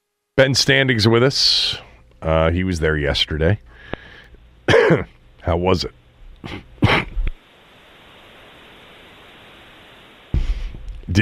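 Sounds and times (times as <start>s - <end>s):
speech: 0.4s - 3.7s, 4.7s - 7.0s
coughing: 4.6s - 5.2s, 6.4s - 7.3s.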